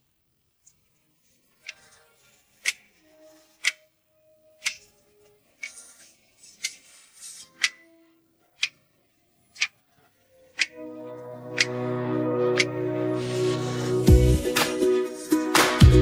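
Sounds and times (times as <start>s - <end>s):
long hymn instrumental: 10.6s - 16.0s.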